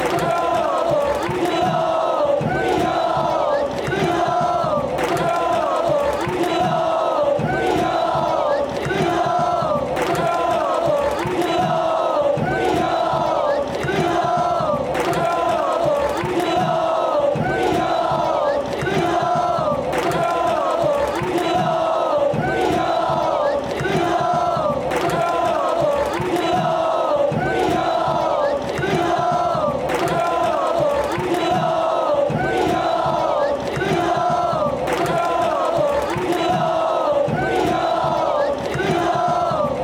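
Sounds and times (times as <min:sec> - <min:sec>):
fans chanting: 0:00.0 - 0:39.8.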